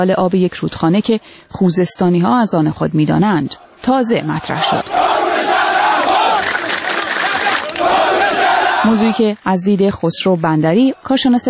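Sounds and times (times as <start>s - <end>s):
speech: 0.0s - 5.6s, 8.8s - 11.4s
protest crowd chanting slogans: 3.6s - 9.4s, 10.6s - 11.4s.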